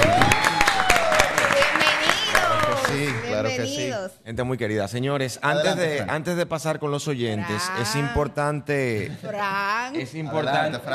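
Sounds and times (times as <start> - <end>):
studio audience applause greeting a guest: 0.0 - 3.4
speech: 4.2 - 10.9.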